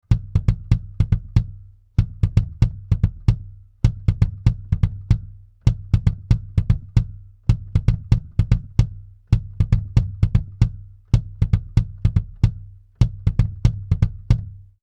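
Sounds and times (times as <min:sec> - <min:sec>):
parallel-compressed bass drum: 0:00.0 - 0:14.8.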